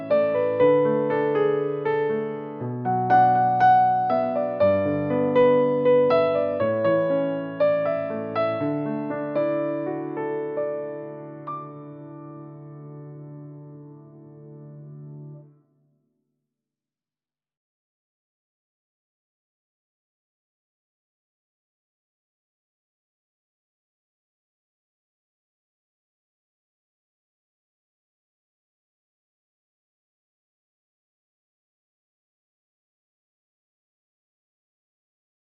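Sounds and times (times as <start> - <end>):
piano music: 0.0 - 15.6.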